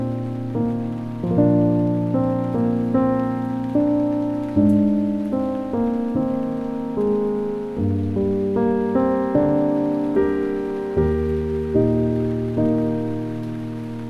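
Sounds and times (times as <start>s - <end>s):
calming piano music: 0.0s - 14.0s
rain: 0.0s - 14.0s.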